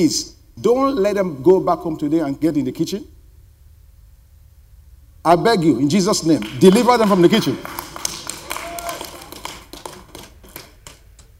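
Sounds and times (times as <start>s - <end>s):
speech: 0.0s - 3.1s, 5.2s - 7.8s
audience clapping hands: 6.4s - 11.3s.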